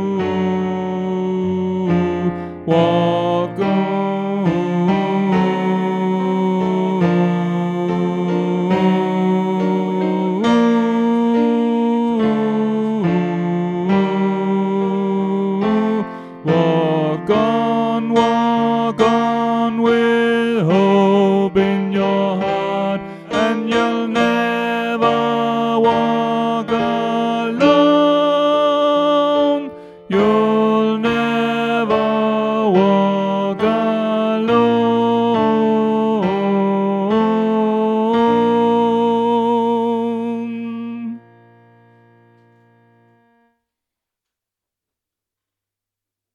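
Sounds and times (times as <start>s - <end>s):
tenor voice singing: 0.0s - 41.5s.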